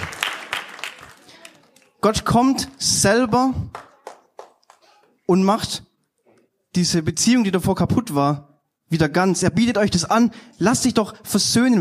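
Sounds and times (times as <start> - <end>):
audience applause: 0.0 - 2.0, 3.7 - 4.9
speech: 2.0 - 3.8, 5.3 - 5.9, 6.8 - 11.8.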